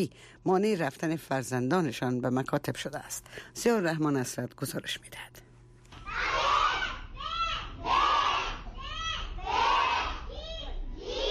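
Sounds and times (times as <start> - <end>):
speech: 0.0 - 5.5
children reciting lessons in a temple: 6.3 - 11.2.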